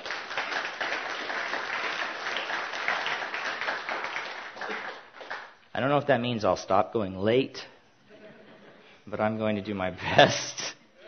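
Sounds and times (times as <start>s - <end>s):
crowd applauding: 0.0s - 5.6s
speech: 5.8s - 7.7s, 9.1s - 10.6s.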